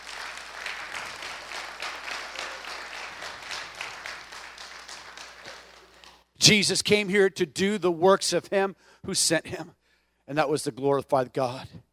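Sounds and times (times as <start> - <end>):
audience applause: 0.0 - 6.1
speech: 6.4 - 11.8.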